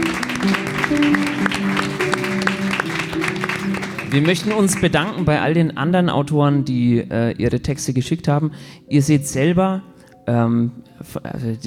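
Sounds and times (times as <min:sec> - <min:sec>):
audience applause: 0:00.0 - 0:05.3
speech: 0:00.4 - 0:01.6, 0:04.1 - 0:11.6.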